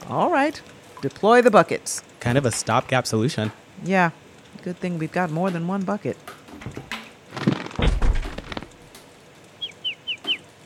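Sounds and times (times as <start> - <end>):
speech: 0.1 - 6.8
bird thudding against window glass: 7.4 - 8.7
high chirps: 9.6 - 10.5.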